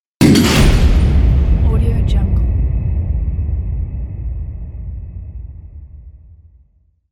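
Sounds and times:
grenade explosion: 0.2 - 4.4.

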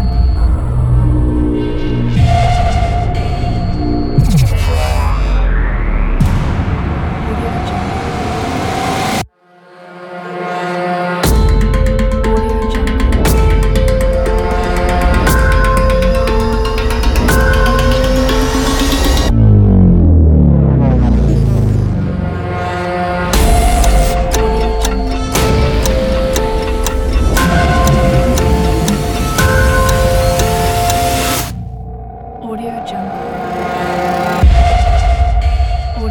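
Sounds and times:
aggressive intro music: 0.2 - 36.0.

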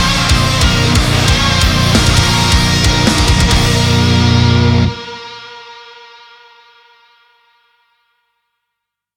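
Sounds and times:
progressive metal music: 0.0 - 6.2.

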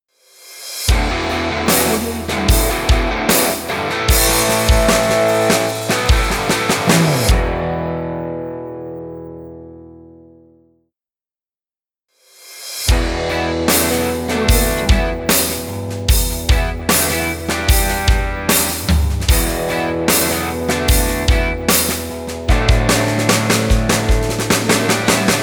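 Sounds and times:
hard rock ident music: 0.9 - 8.0, 12.9 - 25.4.

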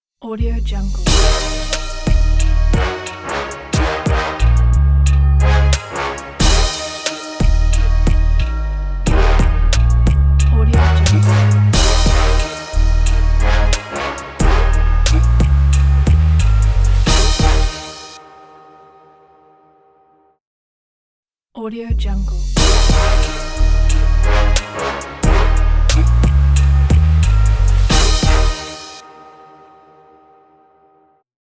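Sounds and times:
dark trap ident: 0.9 - 18.2, 22.6 - 29.0.

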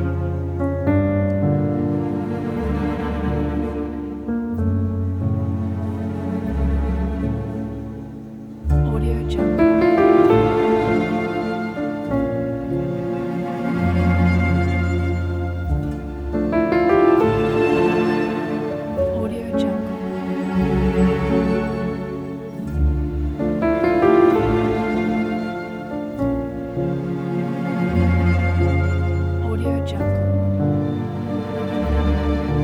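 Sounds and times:
emotional horror piano: 0.0 - 32.6.

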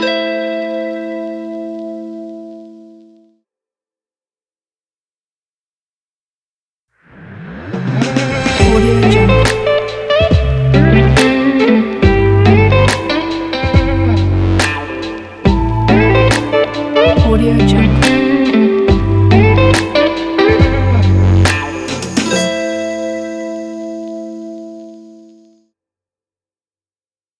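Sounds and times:
smoky sexy music: 7.5 - 25.3.

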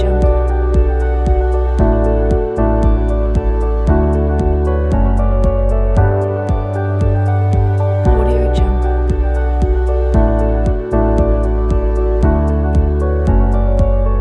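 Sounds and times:
calm inspiring corporate background music loop: 0.0 - 14.1.

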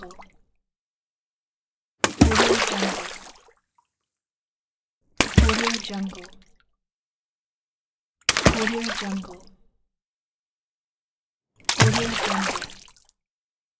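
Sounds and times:
stone dropping in water: 2.0 - 3.0, 5.2 - 5.7, 11.7 - 12.7.

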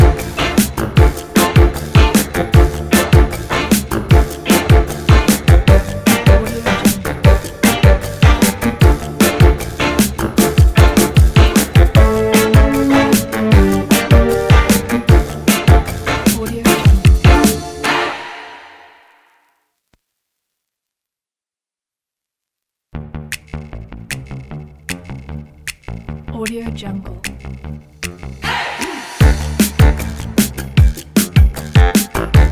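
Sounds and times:
fun upbeat music: 0.0 - 18.9, 28.0 - 32.5.

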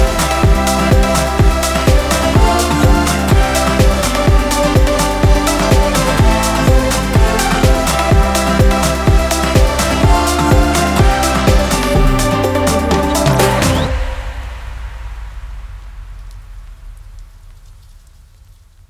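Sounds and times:
uplifting folk EDM music: 0.0 - 14.3.

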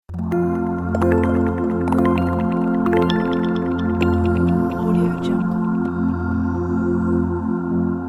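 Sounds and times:
weightless intro ident music: 0.1 - 7.9.

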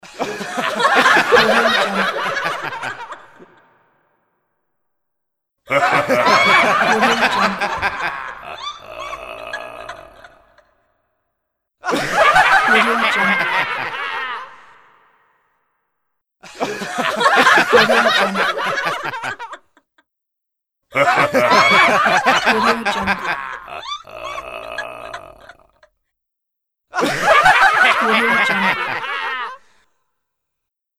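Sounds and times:
small group laughing: 0.0 - 4.0, 5.7 - 10.7, 11.8 - 15.2, 16.4 - 19.9, 20.9 - 25.9, 26.9 - 29.7.

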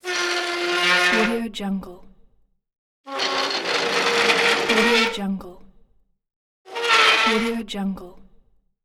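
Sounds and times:
chair moving: 0.0 - 1.4, 3.1 - 5.2, 6.7 - 7.5.

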